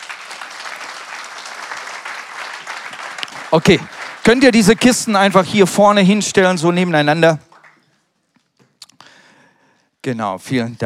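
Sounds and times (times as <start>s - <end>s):
audience applause: 0.0s - 6.0s
speech: 3.5s - 7.5s, 10.0s - 10.8s.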